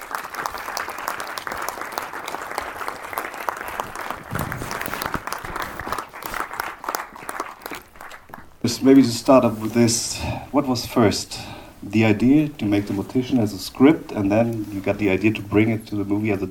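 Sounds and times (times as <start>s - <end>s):
audience applause welcoming a filmmaker: 0.0s - 8.9s
speech: 8.7s - 16.5s.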